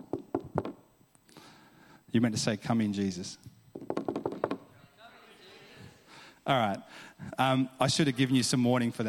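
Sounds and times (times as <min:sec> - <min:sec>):
speech: 0:02.1 - 0:03.5, 0:06.5 - 0:09.0
knocking on a door: 0:03.7 - 0:04.6.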